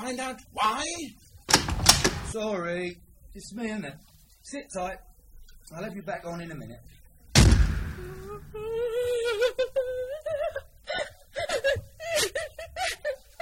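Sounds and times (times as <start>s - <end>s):
speech: 0.1s - 5.1s, 5.7s - 7.0s, 8.0s - 10.4s
person sobbing: 8.0s - 13.4s.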